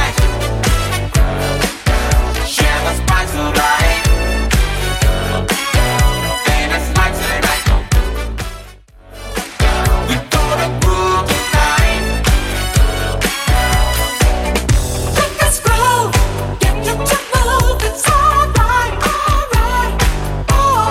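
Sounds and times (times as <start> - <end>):
80s-style drum machine beat: 0.0 - 8.7, 9.4 - 20.8.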